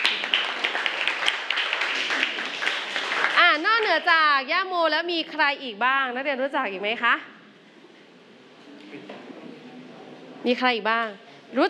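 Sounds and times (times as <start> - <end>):
students clapping for a classmate: 0.0 - 4.2
speech: 3.9 - 7.3, 10.4 - 11.6.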